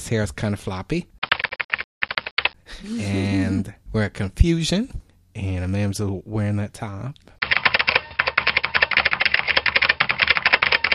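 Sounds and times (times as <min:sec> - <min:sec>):
speech: 0:00.1 - 0:01.2, 0:02.8 - 0:07.4
fast typing on a computer keyboard: 0:01.2 - 0:02.6, 0:07.4 - 0:10.9.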